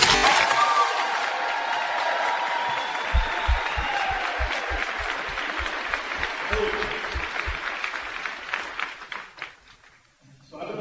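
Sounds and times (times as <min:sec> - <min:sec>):
large audience applause: 0:00.0 - 0:09.6
regular thumping rhythm: 0:03.1 - 0:07.8.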